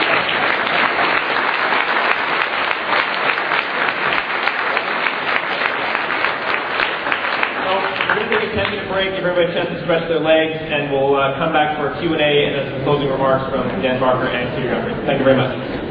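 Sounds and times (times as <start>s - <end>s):
audience applause for two speakers at a lecture event: 0.0s - 8.9s
speech: 9.0s - 15.8s.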